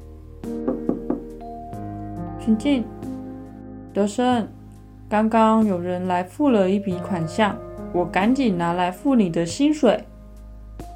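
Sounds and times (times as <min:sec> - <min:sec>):
soft music: 0:00.0 - 0:10.9
knocking on a door: 0:00.6 - 0:01.3
speech: 0:02.4 - 0:03.0, 0:04.0 - 0:10.1.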